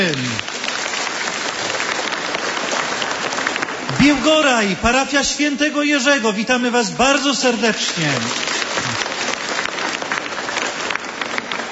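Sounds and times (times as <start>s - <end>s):
applause for a children's rosary group: 0.0s - 11.7s
speech: 4.0s - 9.0s.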